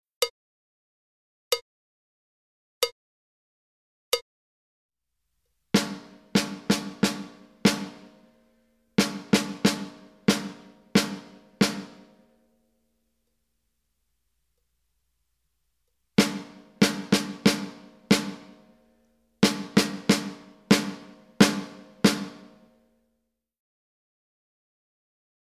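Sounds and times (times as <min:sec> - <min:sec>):
rhythmic melody: 0:05.8 - 0:08.3, 0:09.0 - 0:12.3, 0:16.2 - 0:18.8, 0:19.4 - 0:22.8.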